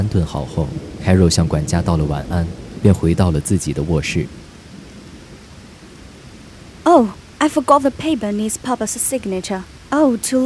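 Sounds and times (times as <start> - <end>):
speech: 0.0 - 4.4, 6.9 - 10.4
thunder: 0.0 - 6.5
rain: 0.0 - 10.4.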